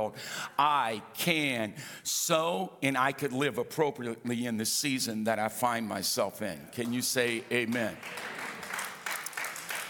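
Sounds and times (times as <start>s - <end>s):
speech: 0.0s - 8.4s
audience clapping: 6.8s - 9.8s.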